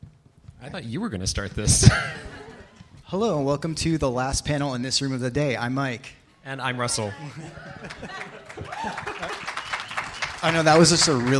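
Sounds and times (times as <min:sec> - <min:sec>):
speech: 0:00.6 - 0:02.5, 0:03.1 - 0:09.1, 0:10.4 - 0:11.3
crowd laughing: 0:01.8 - 0:02.8, 0:07.0 - 0:10.1
crowd clapping: 0:07.5 - 0:11.3.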